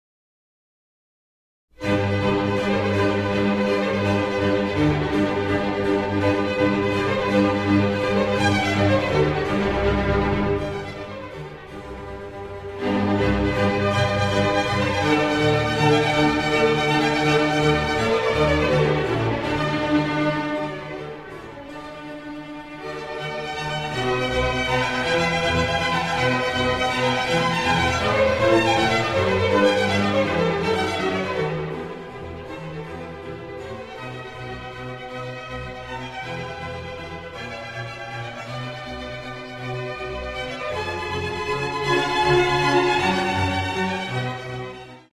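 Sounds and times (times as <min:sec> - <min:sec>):
concerto for strings and continuo in G: 0:01.8 - 0:45.1.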